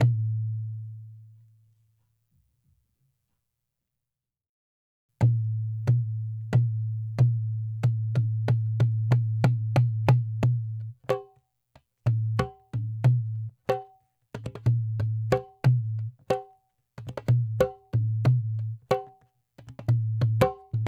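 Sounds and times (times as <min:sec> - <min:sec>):
dholak drum in hip hop: 0:05.2 - 0:11.4, 0:12.0 - 0:20.8.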